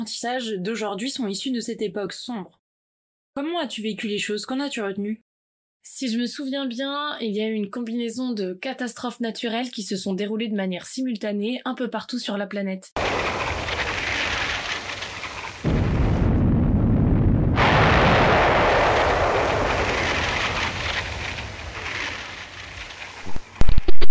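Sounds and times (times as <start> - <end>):
speech: 0.0 - 2.6, 3.4 - 5.2, 5.8 - 13.5
violent storm with strong wind gusts on the Côte d'Azur: 13.0 - 23.9.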